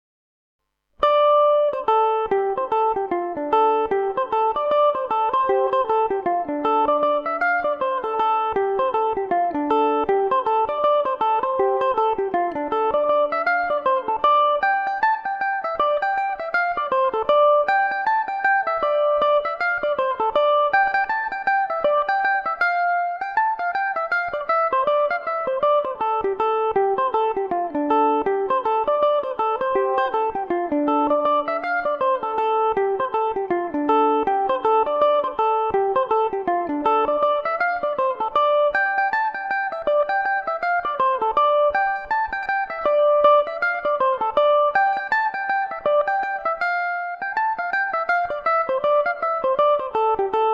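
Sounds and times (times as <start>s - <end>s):
mandolin: 0.9s - 50.5s.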